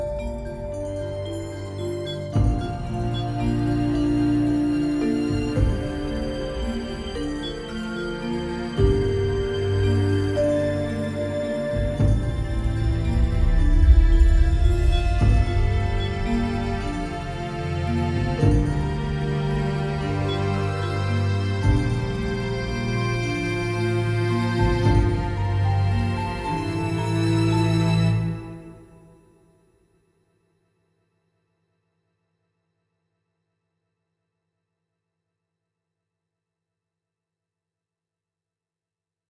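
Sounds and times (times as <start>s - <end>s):
vibraphone passage: 0.0s - 28.8s.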